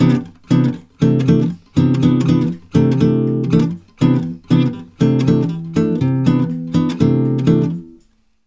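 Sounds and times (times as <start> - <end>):
Brazilian bossa guitar in C at 120: 0.0 - 8.1.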